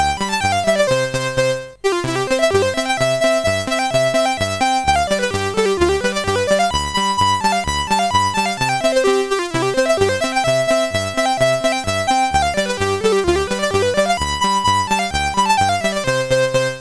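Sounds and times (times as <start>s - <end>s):
clarinet polka: 0.0s - 16.8s.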